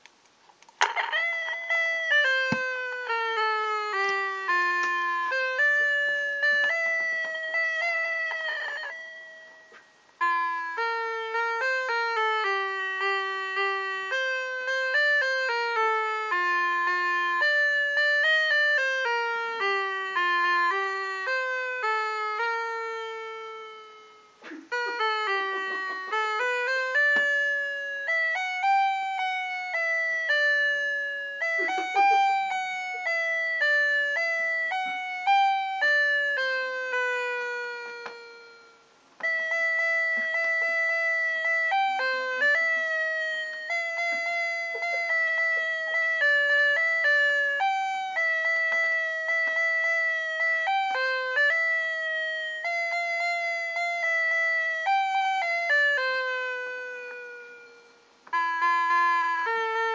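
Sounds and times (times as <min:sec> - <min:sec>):
sad little Christmas bell: 0:00.9 - 0:59.9.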